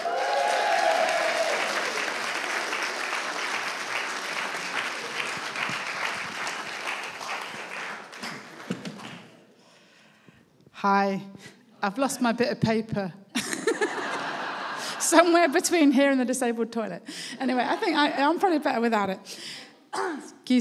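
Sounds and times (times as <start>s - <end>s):
audience applause: 0.0s - 9.4s
speech: 10.8s - 13.2s, 15.1s - 19.4s
laughter: 13.4s - 15.7s, 17.4s - 18.4s.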